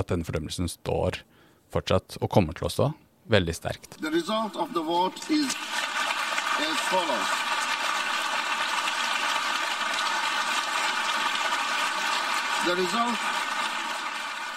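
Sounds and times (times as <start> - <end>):
speech: 0.0 - 5.9, 6.6 - 7.5, 12.6 - 13.4
delegates applauding loudly at assembly vote: 4.0 - 14.5.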